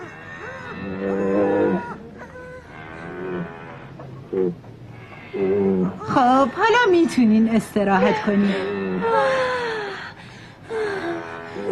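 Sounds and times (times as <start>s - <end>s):
cow mooing while giving birth to a calf: 0.0s - 7.1s, 7.9s - 9.2s, 11.1s - 11.7s
speech: 6.2s - 8.7s.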